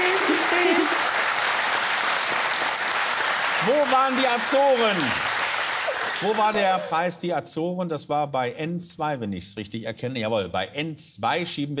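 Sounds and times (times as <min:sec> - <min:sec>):
audience applause: 0:00.0 - 0:07.1
speech: 0:03.6 - 0:05.2, 0:06.2 - 0:11.7.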